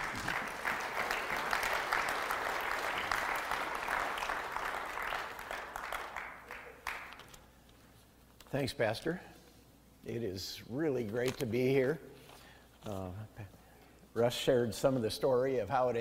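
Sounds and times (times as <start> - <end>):
church audience applauding to welcome a guest speaker: 0.0 - 7.3
speech: 8.5 - 9.3, 10.1 - 12.1, 12.8 - 15.9.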